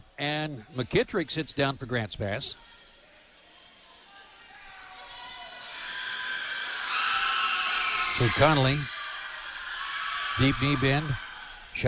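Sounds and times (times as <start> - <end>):
speech: 0.2 - 2.8, 8.2 - 9.0, 10.4 - 11.2
Irish fans roaring at a basketball game: 5.0 - 11.8.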